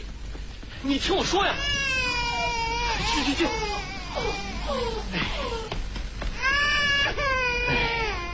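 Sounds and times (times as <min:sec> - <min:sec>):
speech: 0:00.9 - 0:01.9, 0:03.0 - 0:05.7
infant crying: 0:01.5 - 0:05.7, 0:06.4 - 0:08.3.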